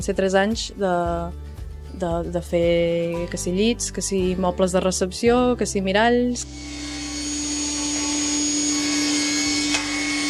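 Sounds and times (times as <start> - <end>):
speech: 0.0 - 7.0
industrial saw starting up: 6.4 - 10.2.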